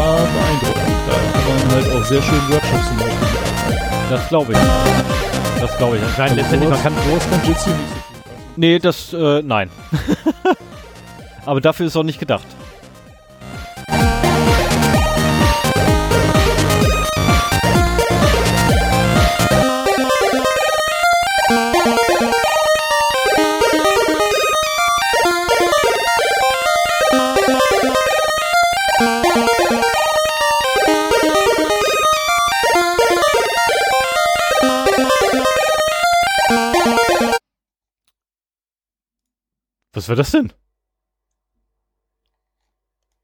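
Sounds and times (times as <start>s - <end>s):
music playing: 0.0s - 37.4s
speech: 2.0s - 3.3s, 4.1s - 8.0s, 8.6s - 10.6s, 11.4s - 12.6s, 40.0s - 40.6s
laughter: 9.9s - 10.7s.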